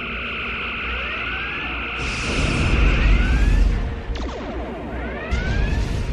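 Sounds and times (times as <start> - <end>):
starship weapon batteries firing laser sweeps: 1.3 - 6.1.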